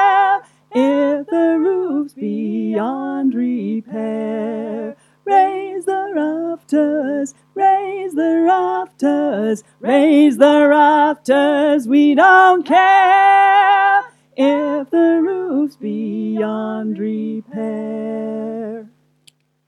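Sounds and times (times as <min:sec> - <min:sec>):
folk choir singing in unison and harmony: 0:00.0 - 0:18.9.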